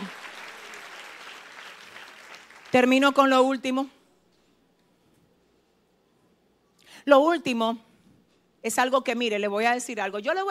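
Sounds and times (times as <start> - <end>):
applause: 0.0 - 3.3
speech: 2.7 - 4.0, 7.1 - 7.9, 8.6 - 10.4.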